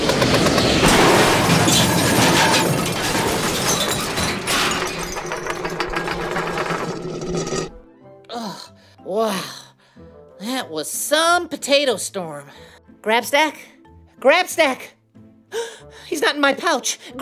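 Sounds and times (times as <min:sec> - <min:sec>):
crash into a heap of junk: 0:00.0 - 0:07.8
speech: 0:11.4 - 0:17.2.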